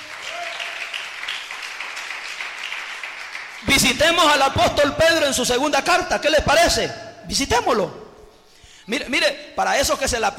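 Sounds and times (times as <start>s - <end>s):
audience applauding: 0.0s - 4.2s
speech: 3.6s - 8.0s, 8.9s - 10.3s.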